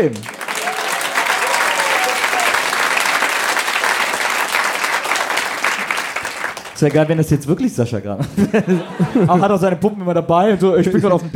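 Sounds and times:
speech: 0.0s - 0.4s, 6.8s - 11.3s
audience applause: 0.0s - 7.2s
laughter: 8.2s - 11.3s.

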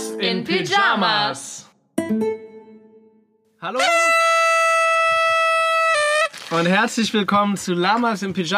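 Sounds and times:
speech: 0.2s - 1.7s, 3.6s - 4.1s, 6.5s - 8.5s
party horns tooting: 3.6s - 6.7s.

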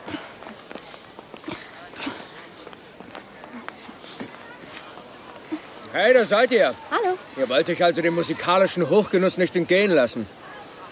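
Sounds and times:
footsteps of people walking over to a bratwurst stand: 0.0s - 8.5s
speech: 6.0s - 10.4s.

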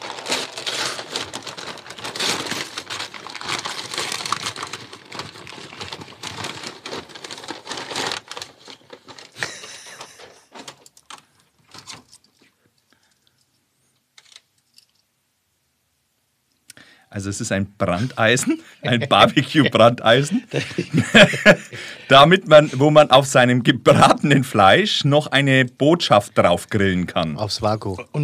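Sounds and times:
wrapping paper crinkling as a gift is unwrapped: 0.0s - 12.5s
laughter: 9.4s - 10.5s, 18.0s - 22.9s
speech: 17.2s - 28.2s.

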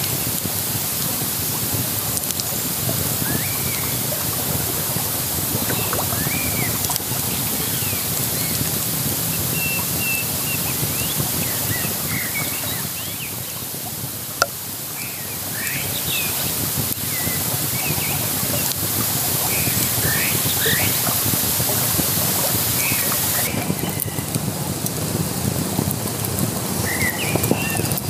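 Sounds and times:
crackling campfire on the Isar: 0.0s - 28.0s
rushing water of the Isar: 0.0s - 28.0s
birds chirping: 2.5s - 13.8s, 14.9s - 24.4s, 26.8s - 28.0s.

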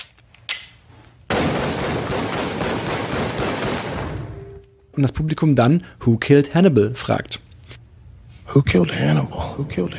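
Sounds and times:
gunfire emptying a full magazine: 1.3s - 3.9s
speech: 5.0s - 7.4s, 8.5s - 9.9s
gun click: 5.1s - 7.8s.

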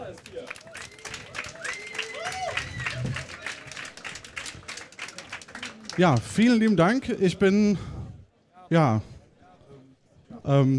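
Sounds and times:
audience applause: 0.0s - 7.0s
speech: 6.0s - 7.9s, 8.7s - 9.1s, 10.5s - 10.7s.

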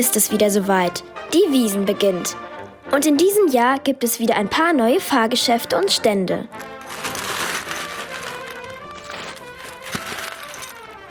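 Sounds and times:
speech: 0.0s - 7.0s
scoop of hard candies poured into bag: 6.6s - 11.1s.

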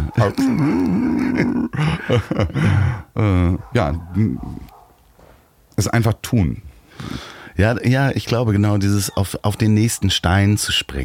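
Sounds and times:
speech: 0.2s - 4.7s, 5.8s - 11.0s
laughter: 0.5s - 3.5s
dog barking: 3.6s - 5.0s.

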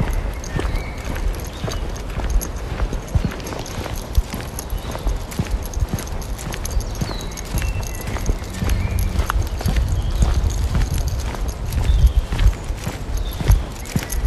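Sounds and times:
bird chirps: 0.0s - 2.2s, 6.4s - 14.2s
footsteps crunching on woodland ground: 0.0s - 14.2s.

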